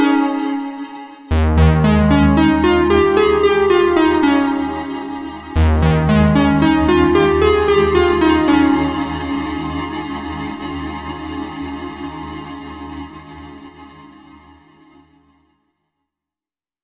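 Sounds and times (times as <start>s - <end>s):
slow arpeggio: 0.0s - 11.1s.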